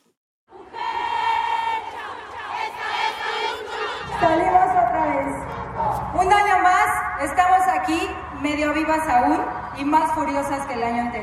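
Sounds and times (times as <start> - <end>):
crowd chanting at a street march: 0.5 - 6.2
speech: 4.2 - 4.6, 7.2 - 11.2.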